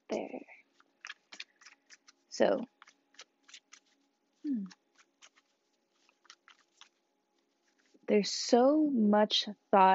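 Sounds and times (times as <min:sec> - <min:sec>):
tarot deck being shuffled: 0:00.1 - 0:08.1
speech: 0:02.4 - 0:02.8, 0:08.1 - 0:09.9.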